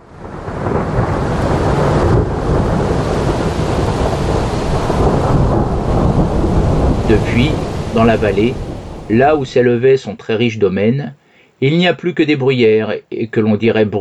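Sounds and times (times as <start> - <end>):
rain-like hiss: 0.0 - 10.0
thunder from a lightning strike: 0.0 - 10.0
speech: 7.1 - 13.9.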